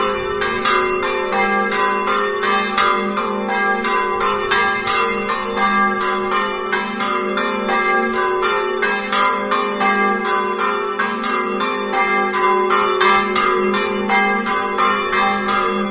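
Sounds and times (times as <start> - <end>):
bells in Cargnacco: 0.0 - 15.8.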